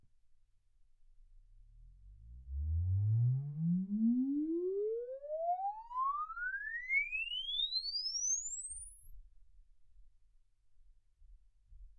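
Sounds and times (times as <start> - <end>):
exponential sine sweep from 10 Hz to 24 kHz: 2.5 - 9.6.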